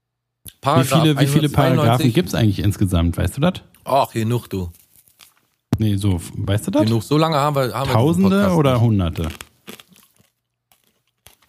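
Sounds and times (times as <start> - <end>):
speech: 0.6 - 4.8, 5.8 - 9.4
person chewing a carrot: 9.1 - 11.4.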